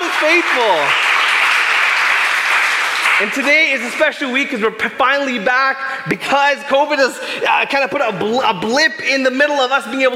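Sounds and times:
audience applause: 0.0s - 4.1s
speech: 0.2s - 1.0s, 3.2s - 10.1s.

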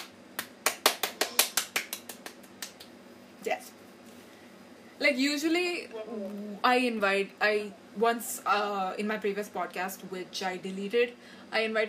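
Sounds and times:
clapping: 0.0s - 2.9s
speech: 5.0s - 11.8s.

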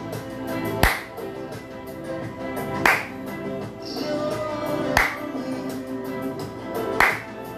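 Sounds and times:
sustained music: 0.0s - 7.5s
hand claps: 0.7s - 1.7s, 2.6s - 3.5s, 4.8s - 5.4s, 6.7s - 7.5s.

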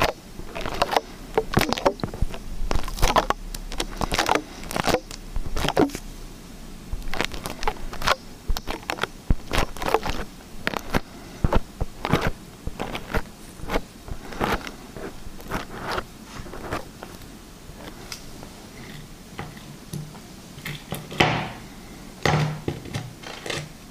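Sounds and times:
liquid slime squished and stretched: 0.0s - 6.1s, 6.9s - 18.8s
faint low hum: 0.0s - 23.9s.

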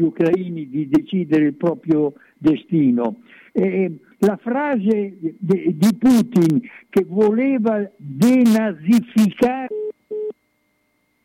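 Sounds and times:
speech: 0.0s - 9.9s
faint hum: 0.0s - 11.2s
telephone busy tone after dropped call: 9.7s - 10.4s.

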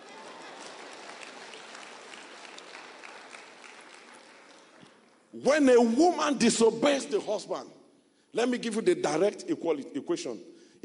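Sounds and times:
audience clapping: 0.0s - 5.3s
speech: 5.3s - 10.8s.

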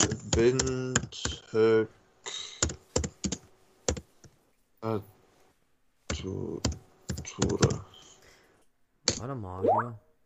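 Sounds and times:
typing on a computer keyboard: 0.0s - 1.4s, 2.6s - 4.0s, 6.1s - 7.8s
speech: 0.4s - 2.0s, 4.8s - 5.1s, 6.2s - 6.8s, 7.4s - 7.9s, 9.2s - 10.0s.

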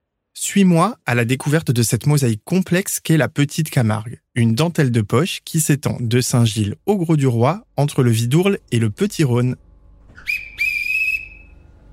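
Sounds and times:
speech: 0.4s - 10.5s
shrill railcar whistle at station departure: 10.2s - 11.9s.

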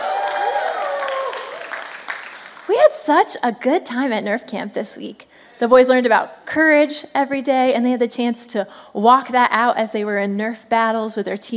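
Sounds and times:
crowd of young voices cheering and shouting: 0.0s - 1.6s
clapping: 0.0s - 2.7s
speech: 2.7s - 11.5s.

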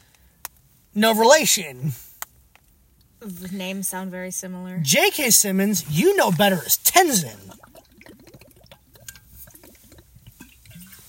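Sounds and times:
speech: 1.0s - 2.1s, 3.2s - 7.7s
people drinking water: 6.5s - 11.0s.

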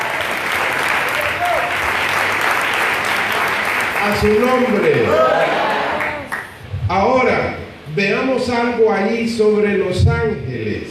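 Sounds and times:
audience applause: 0.0s - 6.5s
speech: 4.0s - 5.6s, 6.9s - 10.8s.

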